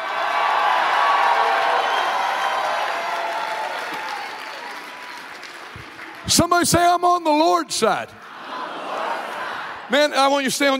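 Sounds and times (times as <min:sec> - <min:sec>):
audience clapping: 0:00.0 - 0:07.0
speech: 0:06.3 - 0:08.2, 0:09.9 - 0:10.7.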